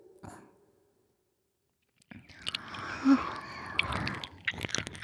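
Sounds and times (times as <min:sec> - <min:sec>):
ASMR ear licking sounds: 0:02.3 - 0:05.0.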